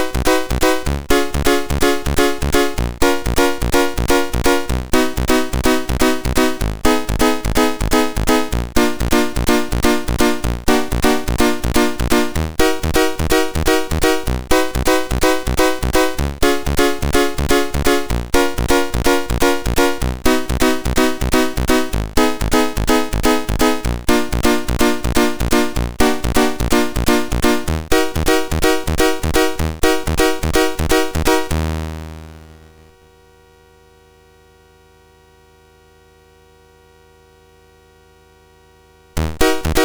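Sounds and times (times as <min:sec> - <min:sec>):
chiptune piano piece on a MOS6581R2 sound chip: 0:00.0 - 0:32.5, 0:39.2 - 0:39.8.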